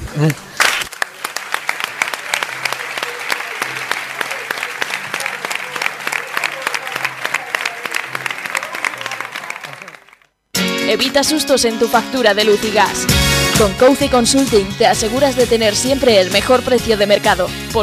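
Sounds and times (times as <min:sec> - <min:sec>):
group applause: 0:00.0 - 0:10.3
speech: 0:00.2 - 0:00.5, 0:10.9 - 0:17.8.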